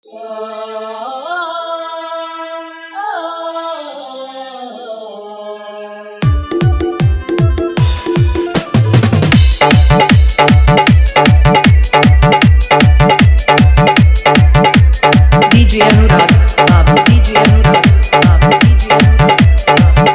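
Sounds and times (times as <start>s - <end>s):
patriotic Desh Bhakti dholak bass mix: 6.2s - 20.1s.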